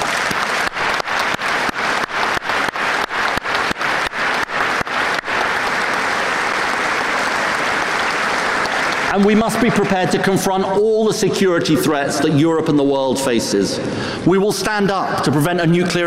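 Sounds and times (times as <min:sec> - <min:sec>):
audience applause: 0:00.0 - 0:10.7
speech: 0:09.2 - 0:16.0.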